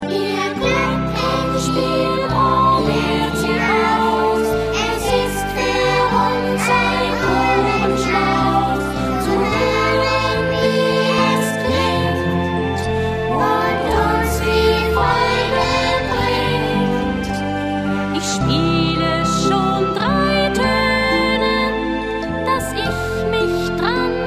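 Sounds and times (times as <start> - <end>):
glockenspiel: 0.0 - 24.2.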